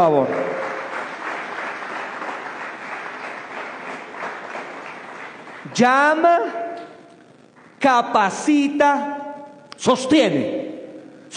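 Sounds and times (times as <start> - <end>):
speech: 0.0 - 0.6, 5.8 - 6.6, 7.8 - 9.2, 9.8 - 10.7
audience applause: 0.0 - 5.8.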